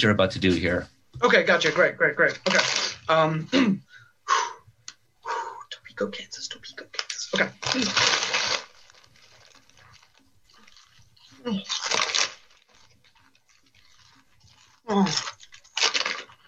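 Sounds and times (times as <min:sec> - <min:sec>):
speech: 0:00.0 - 0:04.5, 0:06.0 - 0:08.4, 0:11.4 - 0:12.0, 0:14.9 - 0:15.4
person eating crunchy salty chips: 0:01.4 - 0:03.2, 0:07.0 - 0:16.4.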